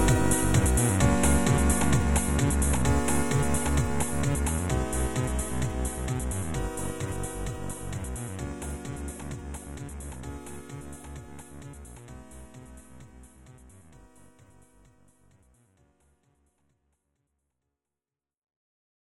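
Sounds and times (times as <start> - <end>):
chiptune music: 0.0 - 12.3.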